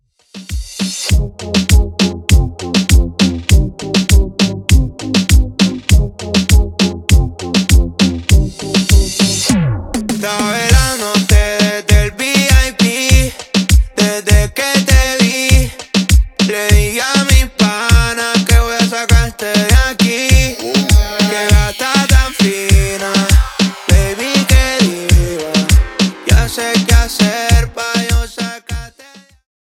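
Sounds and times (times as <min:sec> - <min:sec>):
remix intro music at 100 BPM: 0:00.3 - 0:29.3.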